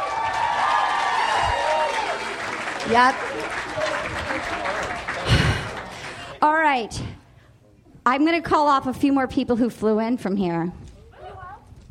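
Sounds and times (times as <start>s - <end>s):
audience round of applause: 0.0s - 6.4s
speech: 2.9s - 3.6s, 6.4s - 7.2s, 8.0s - 10.8s.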